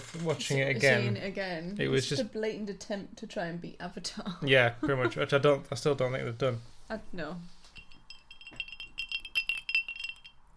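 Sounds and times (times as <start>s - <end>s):
speech: 0.1s - 7.6s
glass of cola clinking: 7.6s - 10.5s.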